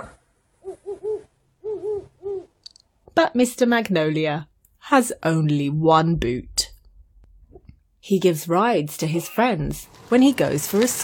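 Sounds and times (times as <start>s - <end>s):
owls hooting: 0.6s - 2.6s
speech: 3.2s - 6.5s, 8.0s - 11.0s.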